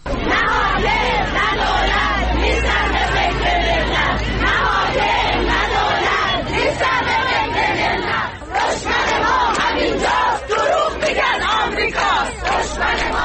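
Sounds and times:
crowd of protesting teachers chanting slogans: 0.0s - 13.2s.

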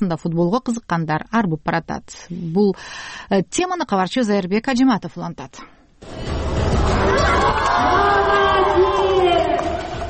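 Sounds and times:
speech: 0.0s - 8.4s
spectators cheering at a girls' football event: 6.1s - 10.0s
high shouting voices: 6.7s - 10.0s.

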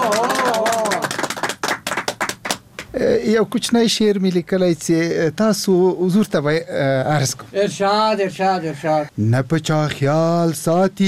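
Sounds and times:
audience clapping welcoming a poet at a Pashto poetry gathering: 0.0s - 3.0s
speech: 3.0s - 11.0s.

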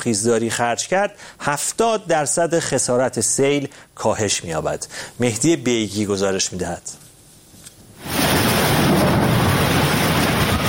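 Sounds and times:
speech: 0.0s - 7.0s
heavy rain: 8.0s - 10.6s.

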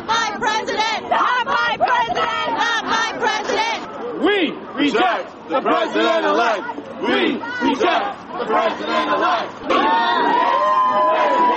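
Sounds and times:
protesters chanting while marching in Manhattan New York: 0.0s - 11.5s.

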